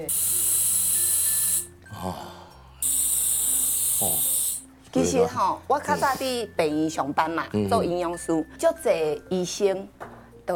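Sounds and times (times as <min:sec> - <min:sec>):
speech: 0:00.0 - 0:00.4, 0:01.9 - 0:02.4, 0:04.0 - 0:04.3, 0:04.9 - 0:10.5
portable oxygen canister spraying: 0:00.0 - 0:01.8, 0:02.8 - 0:04.7.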